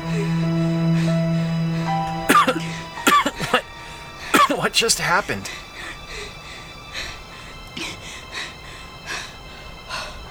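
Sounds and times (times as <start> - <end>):
panicked heavy breathing: 0.0 - 10.2
speech: 4.8 - 5.7.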